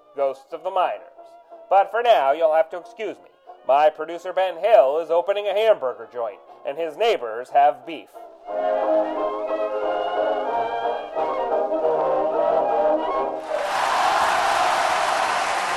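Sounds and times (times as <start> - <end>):
speech: 0.2 - 9.3
sustained tonal music: 8.2 - 15.7
audience applause: 13.4 - 15.7.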